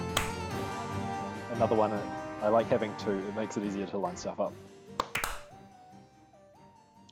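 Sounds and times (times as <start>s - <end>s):
small applause of sharp quick claps: 0.2s - 0.5s, 5.0s - 5.5s
speech: 1.6s - 5.0s.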